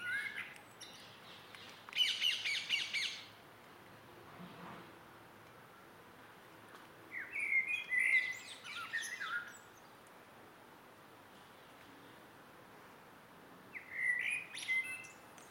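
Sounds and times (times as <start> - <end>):
close blackbird singing in an evening garden: 0.0 - 3.3, 7.1 - 9.9, 13.7 - 15.2.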